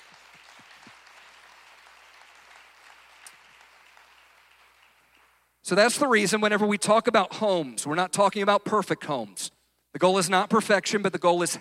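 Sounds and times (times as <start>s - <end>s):
audience applauding: 0.0s - 5.5s
speech: 5.7s - 11.5s.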